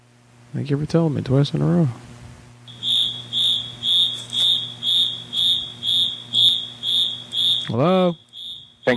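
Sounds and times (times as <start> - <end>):
speech: 0.6 - 2.0, 7.7 - 8.2
security alarm beeping: 2.7 - 8.9.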